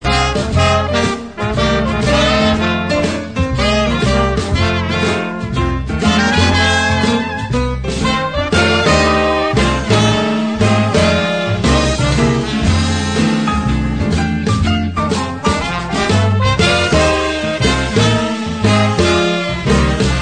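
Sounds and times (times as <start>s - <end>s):
blues piece: 0.0s - 20.1s.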